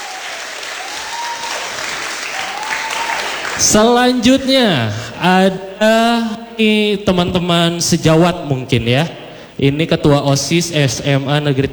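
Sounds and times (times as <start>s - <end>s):
crowd clapping: 0.0s - 4.0s
speech: 3.6s - 11.7s.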